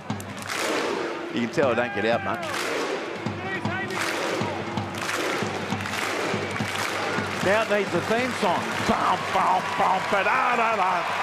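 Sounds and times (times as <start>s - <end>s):
Viking clap from stadium fans: 0.0s - 11.2s
speech: 1.4s - 2.6s, 7.4s - 11.2s.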